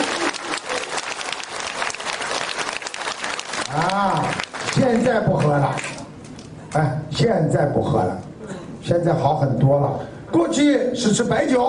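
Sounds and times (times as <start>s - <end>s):
applause: 0.0s - 6.1s
speech: 6.8s - 8.2s, 8.8s - 11.6s.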